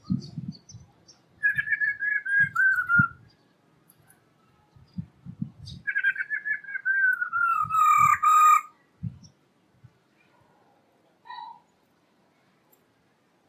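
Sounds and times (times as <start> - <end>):
black-throated laughingthrush song of whistles and a harsh burst: 1.4 - 3.2, 5.8 - 8.7.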